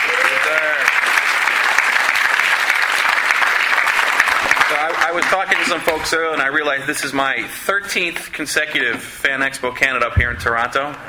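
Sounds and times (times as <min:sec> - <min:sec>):
audience applause: 0:00.0 - 0:06.4
speech: 0:05.1 - 0:11.0.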